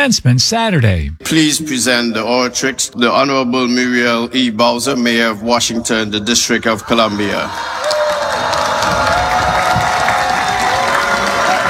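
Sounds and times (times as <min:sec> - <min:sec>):
speech: 0:00.0 - 0:09.0
commencement crowd cheering: 0:07.2 - 0:11.6.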